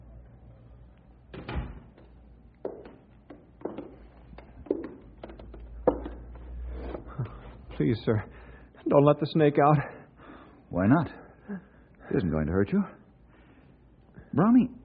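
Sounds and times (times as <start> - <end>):
door being closed: 1.3 - 2.1
speech: 7.8 - 10.0, 10.7 - 13.0, 14.3 - 14.8.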